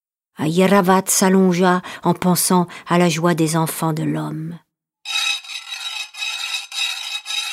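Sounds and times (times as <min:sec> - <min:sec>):
speech: 0:00.4 - 0:05.2
saw rasping through an elephant tusk: 0:05.1 - 0:07.5.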